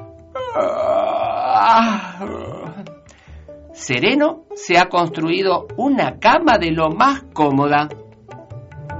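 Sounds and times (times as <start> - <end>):
person yawning: 0.3 - 3.0
speech: 0.5 - 1.0, 1.6 - 2.7, 3.8 - 8.0.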